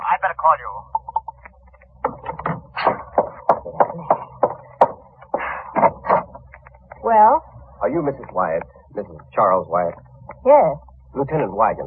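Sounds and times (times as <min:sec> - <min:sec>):
speech: 0:00.4 - 0:01.0, 0:07.9 - 0:11.8
sharp hollow knocking on a door: 0:02.0 - 0:06.4.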